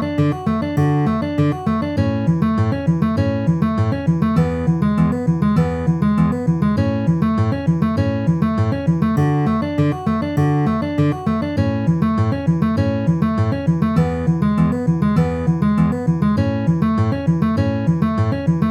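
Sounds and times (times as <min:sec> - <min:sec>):
D A E A pinched notes: 0:00.0 - 0:18.6.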